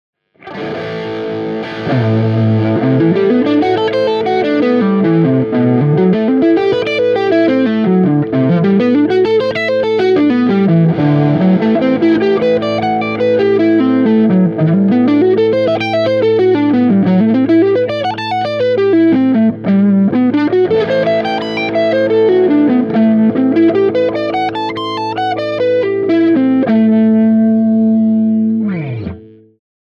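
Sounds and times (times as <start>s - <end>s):
Dorian modal arpeggios: 0.4s - 29.6s.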